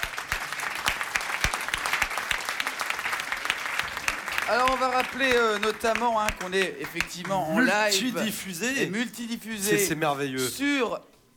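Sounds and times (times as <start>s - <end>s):
audience applause: 0.0s - 8.5s
speech: 4.5s - 11.1s.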